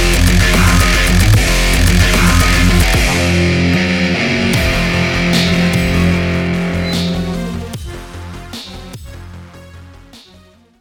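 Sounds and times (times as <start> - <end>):
guitar cover: 0.0 - 8.2.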